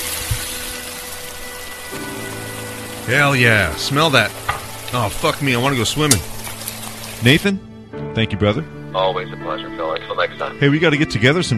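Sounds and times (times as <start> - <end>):
beer deglazing a hot pan, sizzling: 0.0 - 7.6
speech: 3.1 - 6.3, 7.2 - 11.5.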